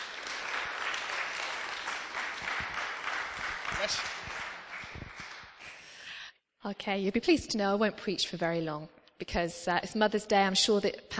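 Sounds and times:
audience applause: 0:00.0 - 0:06.0
speech: 0:03.8 - 0:04.2, 0:06.6 - 0:11.1.

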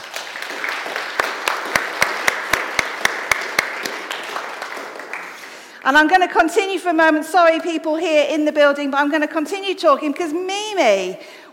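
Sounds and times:
rhythmic claps: 0:00.0 - 0:05.8
scattered applause: 0:00.0 - 0:05.8
speech: 0:05.8 - 0:11.5.

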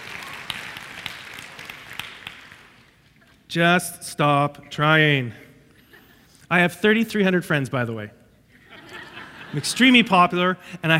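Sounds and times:
audience clapping: 0:00.0 - 0:03.2
speech: 0:03.5 - 0:05.4, 0:06.5 - 0:08.2, 0:09.5 - 0:10.9
laughter: 0:08.5 - 0:10.9.

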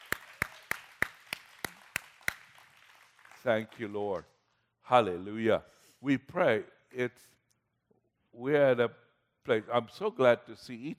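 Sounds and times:
audience clapping for worship team: 0:00.0 - 0:04.4
speech: 0:03.4 - 0:04.3, 0:04.9 - 0:07.4, 0:08.4 - 0:10.9.

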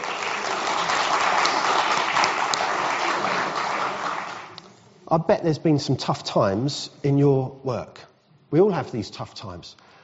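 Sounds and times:
audience round of applause: 0:00.0 - 0:04.6
speech: 0:05.1 - 0:09.8.

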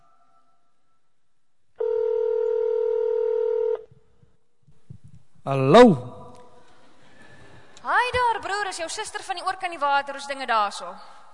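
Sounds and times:
telephone ringing tone: 0:01.8 - 0:03.9
speech: 0:05.5 - 0:06.1, 0:08.8 - 0:11.3.

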